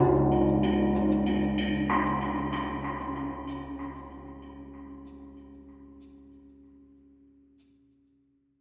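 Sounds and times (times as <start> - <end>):
cave percussion: 0.0 - 6.9.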